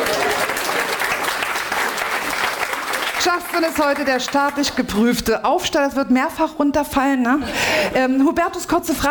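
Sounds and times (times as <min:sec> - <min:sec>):
audience applause: 0:00.0 - 0:04.6
speech: 0:03.2 - 0:09.0.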